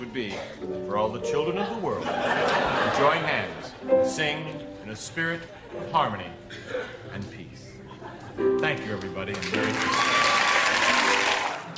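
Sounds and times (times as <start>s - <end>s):
speech: 0.2s - 7.4s, 8.4s - 10.4s
laughter: 1.6s - 3.8s, 7.8s - 8.5s
audience applause: 9.3s - 11.7s.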